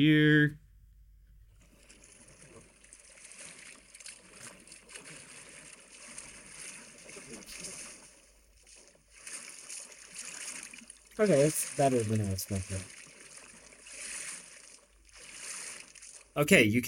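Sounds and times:
speech: 0:00.0 - 0:00.6, 0:11.2 - 0:13.0, 0:16.4 - 0:16.8
underwater sloshing sound effect: 0:01.5 - 0:16.4.

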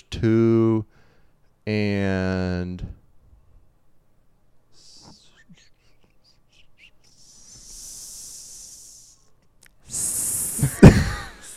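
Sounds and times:
speech: 0:00.2 - 0:01.0, 0:01.6 - 0:03.0
snake hissing: 0:06.5 - 0:09.3, 0:09.9 - 0:10.8.

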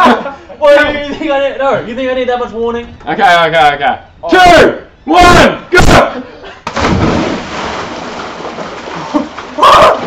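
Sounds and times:
speech: 0:00.1 - 0:07.4
splashing from someone swimming: 0:06.7 - 0:10.0.

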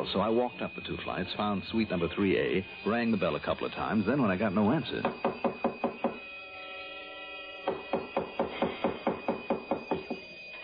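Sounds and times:
speech: 0:00.0 - 0:05.5
pounding on a door: 0:05.0 - 0:06.2, 0:07.6 - 0:10.2.

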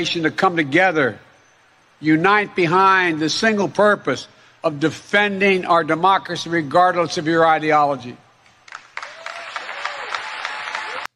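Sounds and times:
speech: 0:00.0 - 0:01.3, 0:02.0 - 0:08.2
audience applause: 0:08.7 - 0:11.1.

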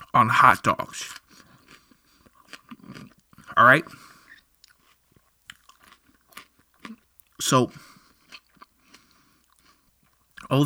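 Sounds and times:
strained voiced sound: 0:00.0 - 0:01.2, 0:03.4 - 0:04.0, 0:07.4 - 0:07.8
speech: 0:00.2 - 0:01.2, 0:03.6 - 0:04.0, 0:07.4 - 0:07.9
crunchy chewing of raw onion: 0:00.8 - 0:10.6.

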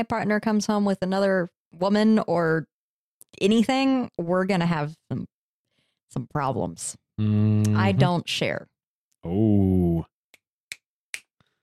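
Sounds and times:
speech: 0:00.0 - 0:02.7, 0:03.3 - 0:05.3, 0:06.1 - 0:10.1
finger snap: 0:10.3 - 0:11.6.

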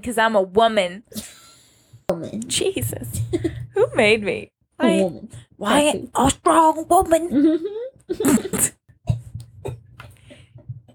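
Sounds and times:
speech: 0:00.0 - 0:01.3, 0:02.1 - 0:08.7
choking cough after swallowing wrong: 0:07.5 - 0:10.0.

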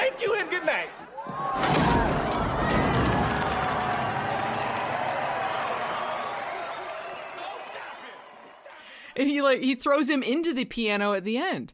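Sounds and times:
audience applause and standing ovation: 0:00.0 - 0:09.2
speech: 0:00.6 - 0:01.8, 0:09.2 - 0:11.7
whoops and shouting voices: 0:01.1 - 0:08.8.

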